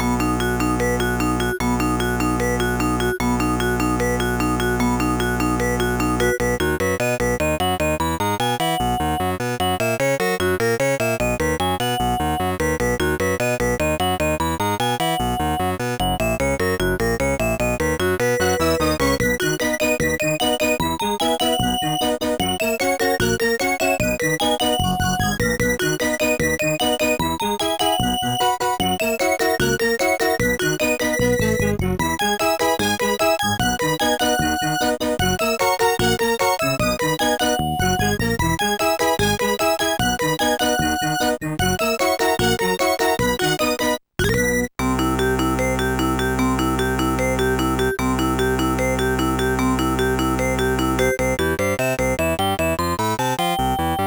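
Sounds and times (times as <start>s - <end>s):
music box: 0.0s - 31.6s, 32.2s - 54.0s.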